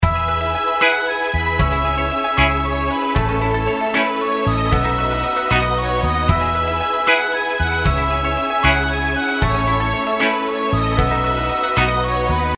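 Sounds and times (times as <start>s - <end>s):
intro background music: 0.0s - 12.5s.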